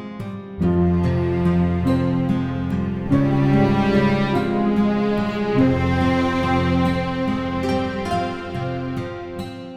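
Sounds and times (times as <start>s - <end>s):
fantasy adventure music: 0.7s - 9.5s.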